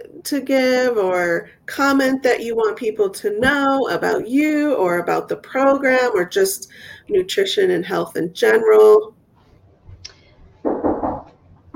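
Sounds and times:
speech: 0:00.2 - 0:09.2
knocking on a door: 0:10.6 - 0:11.7.

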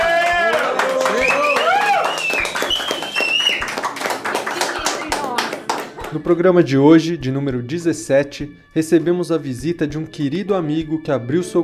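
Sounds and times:
voices cheering and whooping: 0:00.0 - 0:03.4
applause: 0:00.0 - 0:06.3
speech: 0:06.1 - 0:11.6.

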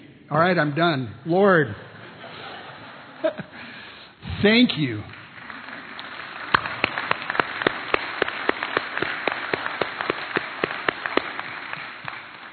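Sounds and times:
speech: 0:00.3 - 0:01.9, 0:03.2 - 0:03.8, 0:04.4 - 0:05.2
audience applause: 0:05.1 - 0:12.5.

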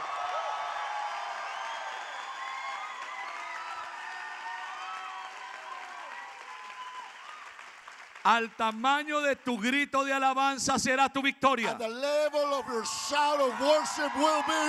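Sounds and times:
audience applauding: 0:00.0 - 0:08.8, 0:12.4 - 0:14.6
speech: 0:08.2 - 0:14.6.

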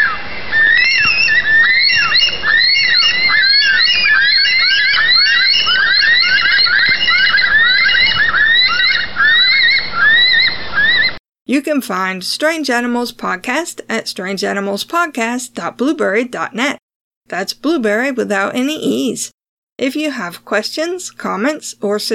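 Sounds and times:
bird call: 0:00.0 - 0:11.2
speech: 0:11.6 - 0:22.1.

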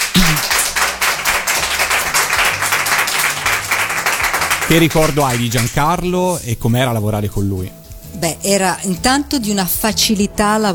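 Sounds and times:
audience applause: 0:00.0 - 0:06.0
speech: 0:04.7 - 0:10.7.

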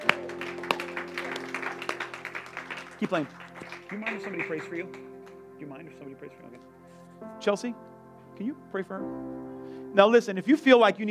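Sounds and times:
audience clapping: 0:00.0 - 0:05.5
speech: 0:03.0 - 0:11.0.

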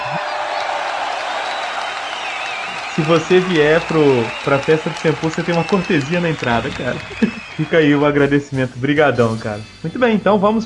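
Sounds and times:
group applause: 0:00.0 - 0:08.3
laughter: 0:02.8 - 0:08.0
speech: 0:03.0 - 0:10.6.

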